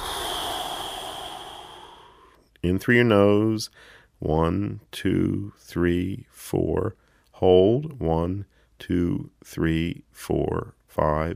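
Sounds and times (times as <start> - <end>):
long soft exhale through the mouth during a breathing exercise: 0.0 - 2.4
speech: 2.6 - 11.3.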